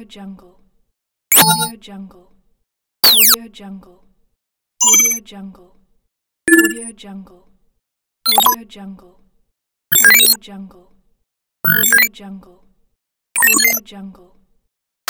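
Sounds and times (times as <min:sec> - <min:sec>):
interface sound effects: 0:01.3 - 0:01.7, 0:06.5 - 0:06.9, 0:08.3 - 0:08.6, 0:09.9 - 0:10.4, 0:11.7 - 0:12.1, 0:13.4 - 0:13.8.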